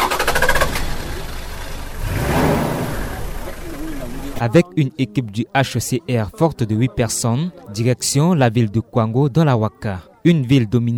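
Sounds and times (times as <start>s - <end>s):
white 4x4 off-road vehicle engine rumble: 0.0s - 4.7s
speech: 4.4s - 10.9s.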